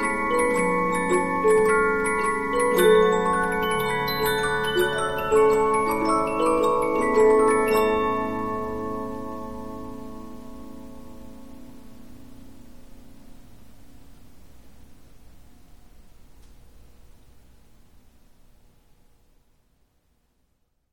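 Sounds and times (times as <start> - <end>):
Polyphon 15-inch disc music box playing: 0.0 - 10.0.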